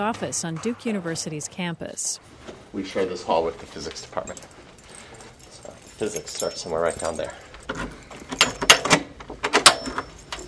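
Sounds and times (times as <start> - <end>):
speech: 0.0 - 4.6, 6.0 - 7.9
office door handle and latch clicking: 7.6 - 10.4.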